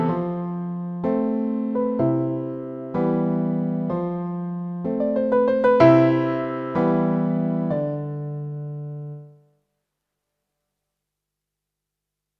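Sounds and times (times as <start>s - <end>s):
synthesizer piano piece: 0.0s - 9.4s.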